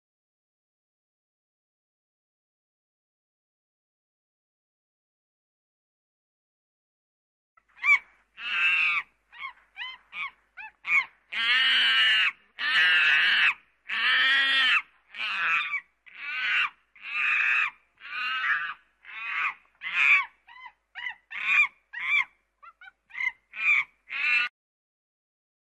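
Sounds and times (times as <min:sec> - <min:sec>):
monkey calls: 0:07.8 - 0:24.5.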